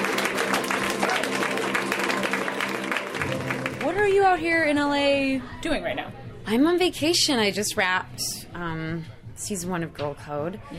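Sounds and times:
audience clapping for a stand-up comedian: 0.0 - 4.4
crowd noise: 0.0 - 6.7
speech: 4.0 - 10.7.

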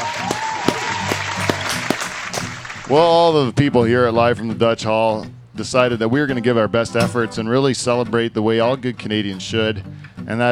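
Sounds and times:
audience applause: 0.0 - 3.2
speech: 2.9 - 10.4.

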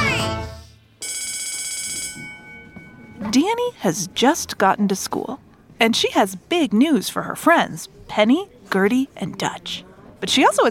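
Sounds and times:
bell signalling time to switch brushing: 1.0 - 4.6
speech: 3.3 - 10.6.

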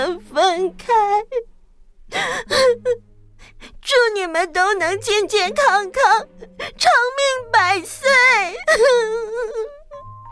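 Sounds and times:
speech: 0.0 - 1.5, 2.2 - 3.1, 3.9 - 9.8
girl crying: 2.1 - 4.1, 5.1 - 10.1.

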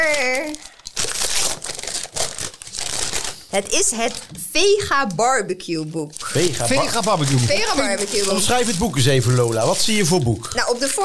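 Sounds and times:
gift wrapping paper ripped and crinkled open: 0.0 - 4.8, 5.7 - 11.0
speech: 3.6 - 11.0.

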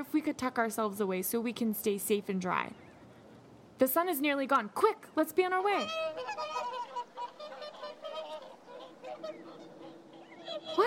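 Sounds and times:
speech: 0.0 - 2.9, 3.8 - 6.6, 10.6 - 10.8
swans honking: 5.5 - 10.8.

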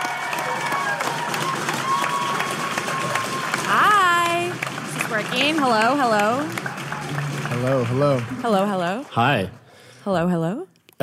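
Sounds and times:
scattered whoops and cheers: 0.0 - 4.6, 6.3 - 7.6
audience applause: 0.0 - 9.9
audience whistles: 1.0 - 3.8
speech: 5.2 - 6.7, 7.6 - 11.0.

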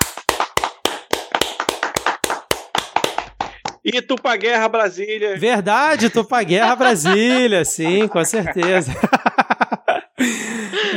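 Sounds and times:
hand clapping: 0.0 - 4.6, 6.0 - 9.2
speech: 3.8 - 9.2, 10.2 - 10.9
laughter: 5.4 - 10.9.

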